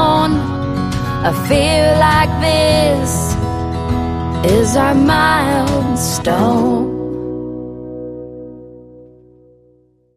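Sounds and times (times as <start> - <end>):
vocals: 0.0 - 7.9.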